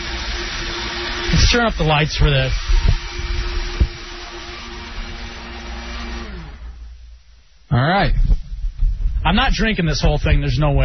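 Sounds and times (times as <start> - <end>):
blender running in the background: 0.0 - 7.2
speech: 1.5 - 2.6, 7.7 - 8.4, 9.2 - 10.8.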